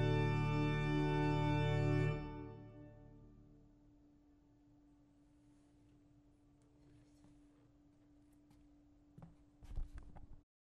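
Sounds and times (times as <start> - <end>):
pipe organ playing plein jeu registration: 0.0 - 3.5.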